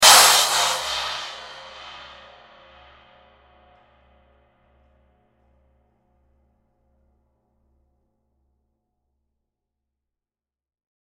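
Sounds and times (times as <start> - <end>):
hard crash cymbal hit with flanger: 0.0 - 2.4.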